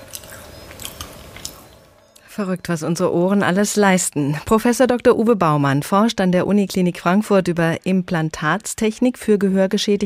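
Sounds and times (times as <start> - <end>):
crunching crisp potato chips: 0.0 - 1.8
speech: 2.4 - 10.0.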